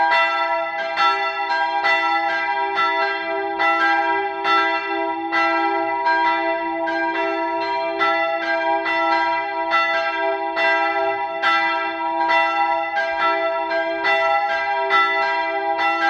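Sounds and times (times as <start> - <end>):
church bells ringing: 0.0 - 16.0.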